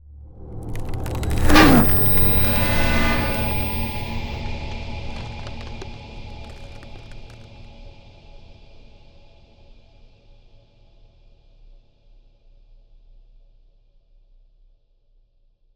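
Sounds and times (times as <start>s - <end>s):
ice spell cold whooshes: 1.0s - 4.3s.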